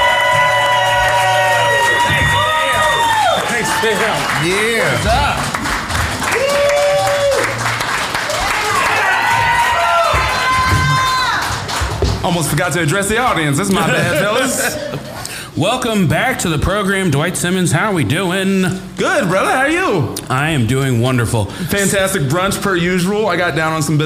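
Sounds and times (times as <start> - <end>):
crowd whoops and shouting voices: 0.0 - 4.3, 6.2 - 7.6, 8.3 - 11.5
comedy festival crowd clapping: 0.0 - 14.5
speech: 3.9 - 5.4, 12.3 - 24.0
laughter: 13.3 - 15.4.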